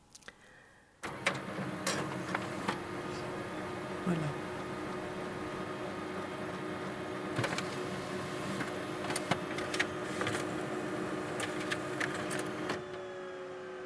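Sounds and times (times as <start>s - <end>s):
printer clicks and clacks: 1.0s - 2.9s, 7.3s - 10.5s, 11.2s - 12.9s
printer printing coupons: 1.0s - 13.3s
speech: 4.1s - 4.4s.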